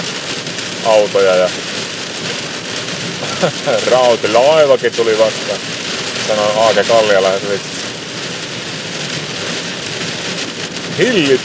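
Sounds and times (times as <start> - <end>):
heavy rain pouring: 0.0 - 11.4
speech: 0.8 - 1.7, 3.4 - 7.8, 11.0 - 11.4
laughter: 3.2 - 3.8.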